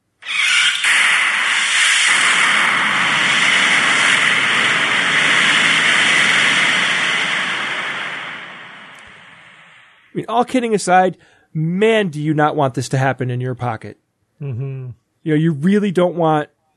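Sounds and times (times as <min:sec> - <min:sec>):
nail puncturing battery: 0:00.2 - 0:04.2
roaring hiss of a battery venting fire: 0:00.2 - 0:10.1
speech: 0:10.3 - 0:16.5.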